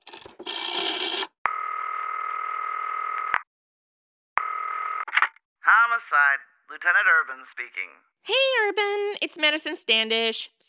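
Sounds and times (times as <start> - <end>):
rotary phone being dialed: 0.0 - 1.4
long steady buzzing phone ring tones: 0.4 - 3.3, 4.4 - 5.1
speech: 6.0 - 10.6.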